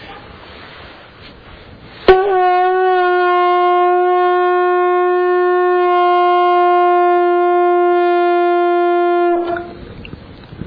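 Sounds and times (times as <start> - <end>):
conch shell blown in a temple: 2.1 - 9.8.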